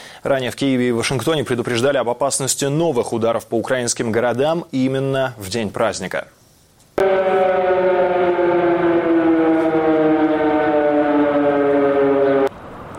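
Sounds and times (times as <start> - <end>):
speech: 0.2 - 6.4, 7.0 - 8.0
air raid siren: 7.0 - 12.6.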